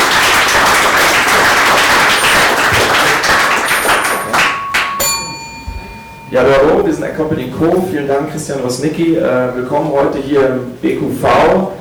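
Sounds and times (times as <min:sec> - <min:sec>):
audience applause: 0:00.0 - 0:05.6
speech: 0:06.3 - 0:11.7.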